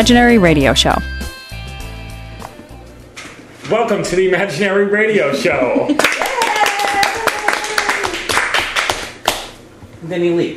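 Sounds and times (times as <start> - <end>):
speech: 0.0 - 1.2, 3.7 - 6.2, 10.0 - 10.5
person clapping hands: 6.0 - 9.6.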